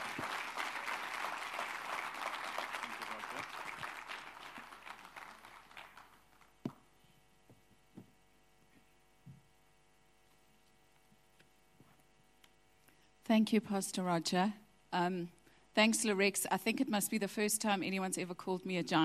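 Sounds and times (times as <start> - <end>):
audience round of applause: 0.0 - 6.6
speech: 13.3 - 19.0.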